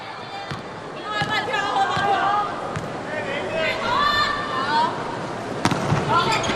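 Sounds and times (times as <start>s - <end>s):
arena noise: 0.0s - 6.5s
volleyball serve struck by the Chinese team in an indoor match: 0.5s - 3.0s, 5.6s - 6.1s
commentators talking: 0.8s - 5.3s.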